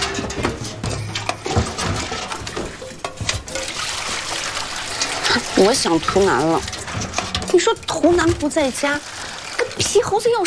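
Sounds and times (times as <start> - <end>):
clinks and knocks: 0.0 - 10.4
hot water being poured: 0.0 - 10.4
speech: 5.6 - 6.8, 7.6 - 9.2, 9.8 - 10.4.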